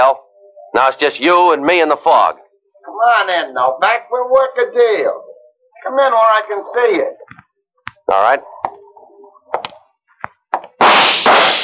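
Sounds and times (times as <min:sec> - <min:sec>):
speech: 0:00.8 - 0:02.4, 0:03.0 - 0:05.2, 0:05.8 - 0:07.4, 0:08.1 - 0:08.5
gunshots in a radio drama: 0:10.8 - 0:11.6.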